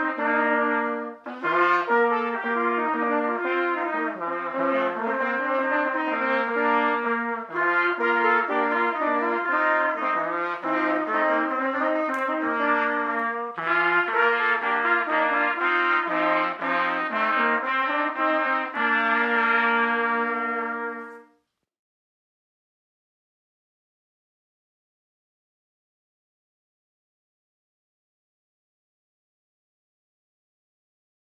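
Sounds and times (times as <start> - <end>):
trumpet: 0.0 - 21.5.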